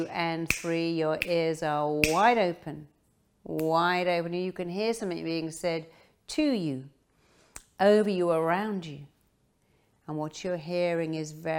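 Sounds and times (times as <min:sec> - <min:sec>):
speech: 0:00.0 - 0:07.0, 0:07.8 - 0:09.1, 0:10.1 - 0:11.5
finger snaps: 0:00.5 - 0:01.4, 0:02.0 - 0:02.2.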